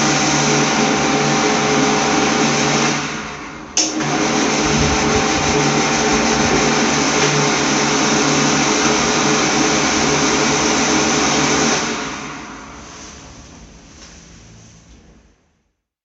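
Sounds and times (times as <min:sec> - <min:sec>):
hand dryer in a neo-romanesque cathedral crypt: 0:00.0 - 0:03.2, 0:03.8 - 0:13.3.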